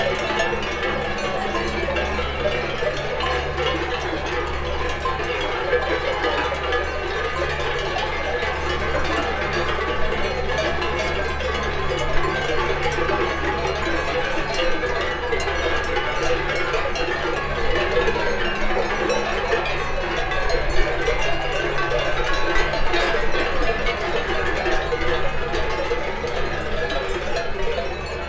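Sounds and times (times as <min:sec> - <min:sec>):
cowbells: 0:00.0 - 0:28.2.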